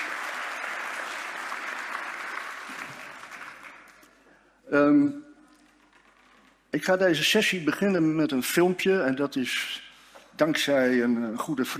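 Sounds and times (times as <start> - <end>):
audience applause: 0.0 - 4.1
speech: 4.7 - 5.2, 6.8 - 9.8, 10.4 - 11.7.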